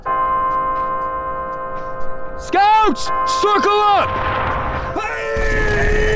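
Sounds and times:
alarm bell ringing: 0:00.0 - 0:06.0
speech: 0:02.4 - 0:04.4.

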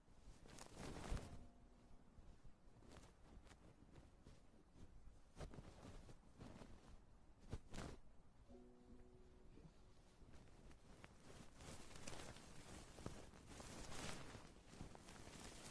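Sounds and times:
ear massage rubbing scratching and crinkling: 0:00.2 - 0:08.1, 0:09.6 - 0:15.7.

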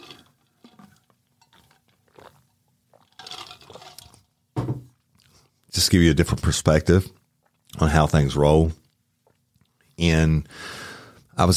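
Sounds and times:
slurping sips of tea: 0:00.0 - 0:04.2
speech: 0:05.8 - 0:07.2, 0:07.8 - 0:08.8, 0:10.0 - 0:10.8, 0:11.4 - 0:11.5.

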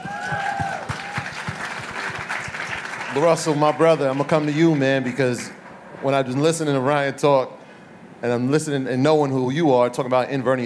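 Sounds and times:
audience applause: 0:00.0 - 0:05.6
speech: 0:03.2 - 0:07.6, 0:08.2 - 0:10.6.

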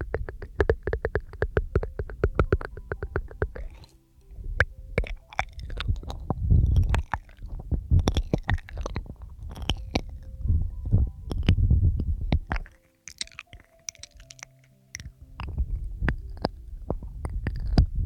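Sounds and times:
wet mouth clicks, smacks and pops: 0:00.0 - 0:18.0
low rumble: 0:04.2 - 0:12.6, 0:15.2 - 0:18.0.

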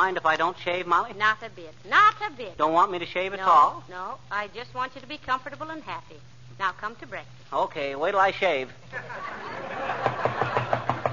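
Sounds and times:
speech: 0:00.0 - 0:10.2
faint hiss: 0:00.0 - 0:11.1
laughter: 0:08.9 - 0:11.1
knocking on a door: 0:10.0 - 0:11.1.

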